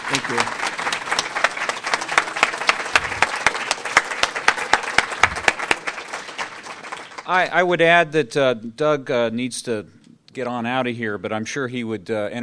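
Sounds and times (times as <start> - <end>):
audience applause: 0.0 - 7.4
speech: 0.1 - 0.6, 7.3 - 12.4.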